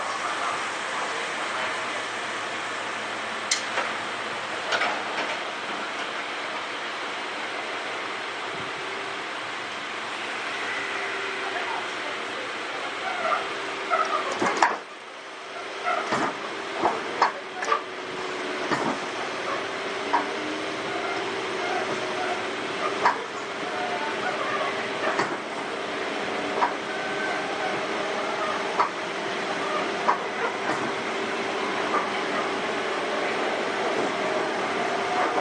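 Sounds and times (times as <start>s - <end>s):
Sotetsu 7000 series train rumble and hum: 0.0s - 35.3s
faint voices: 10.7s - 14.4s, 17.0s - 35.3s.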